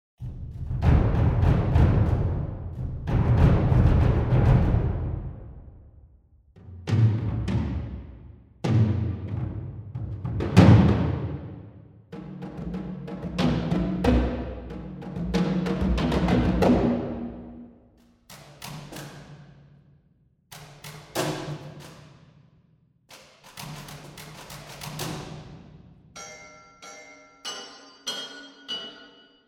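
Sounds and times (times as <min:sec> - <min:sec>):
percussion ensemble: 0:00.2 - 0:05.9, 0:06.6 - 0:19.8, 0:20.5 - 0:22.5, 0:23.1 - 0:29.3.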